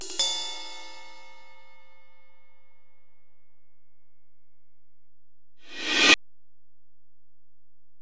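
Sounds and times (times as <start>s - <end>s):
ride cymbal on Alesis DM-PRO: 0.0s - 2.0s, 5.7s - 6.2s.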